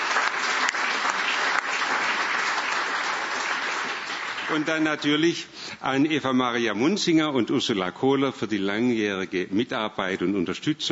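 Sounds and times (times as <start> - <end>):
crowd applause: 0.0 - 4.9
speech: 4.5 - 10.9.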